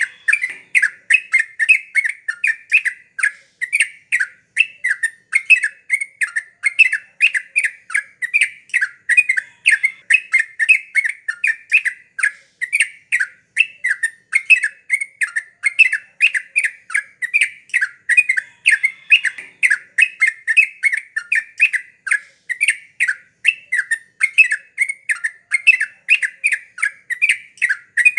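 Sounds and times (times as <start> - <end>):
Yellow-vented Bulbul chirping: 0.0 - 28.1.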